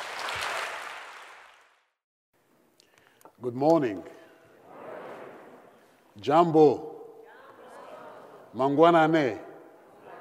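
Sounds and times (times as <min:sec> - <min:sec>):
audience applause welcoming a visiting bishop at a morning gathering: 0:00.0 - 0:01.8
speech: 0:03.4 - 0:04.2, 0:06.2 - 0:06.9, 0:08.5 - 0:09.4.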